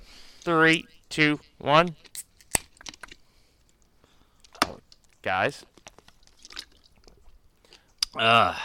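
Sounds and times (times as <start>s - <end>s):
speech: 0.4s - 2.1s, 5.2s - 5.7s, 8.1s - 8.6s
beer cans cracking open: 2.0s - 8.2s.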